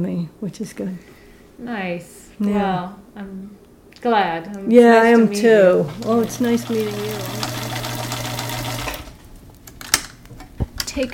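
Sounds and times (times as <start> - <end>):
speech: 0.0 - 7.6, 11.0 - 11.1
sewing machine stitching fabric arm pieces of a stuffed bear: 5.8 - 9.3.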